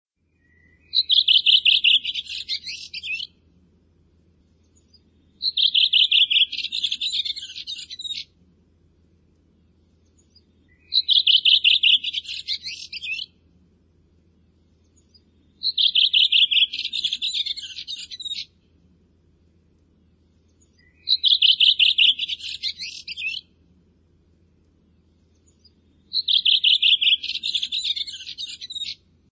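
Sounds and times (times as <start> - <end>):
bird singing chirping phrases: 0.3 - 3.4, 4.4 - 8.4, 9.6 - 13.4, 14.3 - 18.7, 20.0 - 23.6, 24.8 - 29.1.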